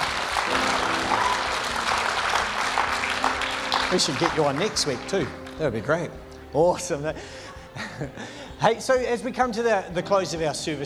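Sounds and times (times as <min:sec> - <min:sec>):
crowd applauding: 0:00.0 - 0:05.8
speech: 0:03.9 - 0:10.8.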